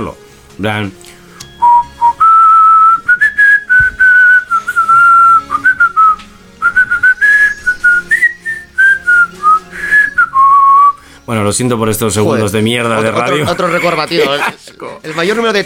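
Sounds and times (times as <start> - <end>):
speech: 0.0 - 1.2, 11.3 - 15.6
person whistling a melody on both inhale and exhale: 1.5 - 11.0
laughter: 12.7 - 15.6.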